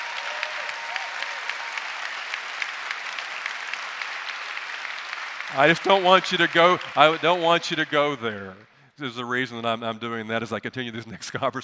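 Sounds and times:
crowd audience applause: 0:00.0 - 0:08.7
speech: 0:05.5 - 0:11.6.

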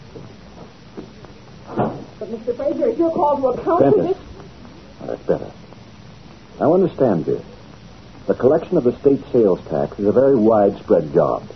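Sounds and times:
door being closed: 0:01.7 - 0:02.2
speech: 0:02.2 - 0:04.2, 0:06.6 - 0:07.5, 0:08.3 - 0:11.5.

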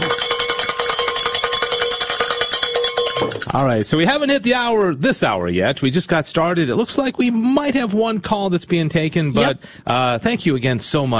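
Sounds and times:
bell rung for reaching donation goal: 0:00.0 - 0:03.9
speech: 0:03.3 - 0:11.1.

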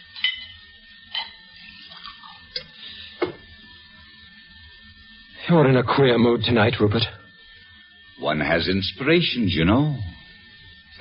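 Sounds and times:
mixing a drink: 0:00.1 - 0:03.4
speech: 0:05.5 - 0:07.2, 0:08.2 - 0:10.1.

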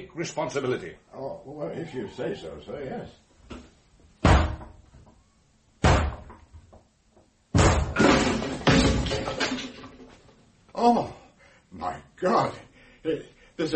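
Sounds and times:
speech: 0:00.0 - 0:03.6, 0:10.8 - 0:13.7
door being forced and broken down: 0:04.2 - 0:05.0, 0:07.5 - 0:10.2.

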